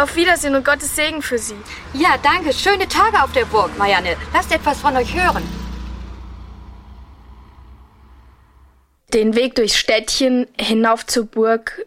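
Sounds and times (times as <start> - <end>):
speech: 0.0 - 5.6, 9.1 - 11.8
taxi engine rumble: 0.0 - 8.9
broad road noise of a taxi: 0.0 - 9.0.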